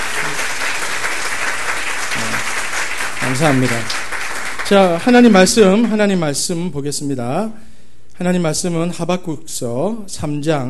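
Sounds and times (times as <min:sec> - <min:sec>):
audience applause: 0:00.0 - 0:06.0
speech: 0:03.3 - 0:04.0, 0:04.7 - 0:10.6.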